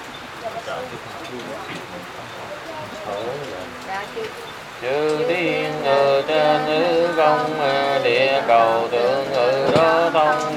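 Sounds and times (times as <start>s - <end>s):
rain falling: 0.0s - 10.5s
speech: 0.7s - 10.5s.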